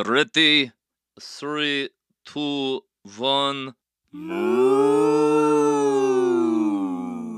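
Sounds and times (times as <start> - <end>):
speech: 0.0 - 6.0
two voices singing a cow-like moo an octave apart: 4.2 - 7.3.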